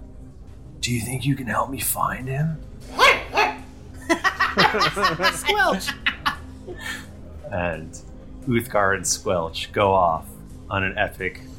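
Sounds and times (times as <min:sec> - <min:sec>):
speech: 0:00.8 - 0:03.0, 0:04.1 - 0:11.5
dog barking: 0:02.9 - 0:03.7
laughter: 0:04.0 - 0:07.1.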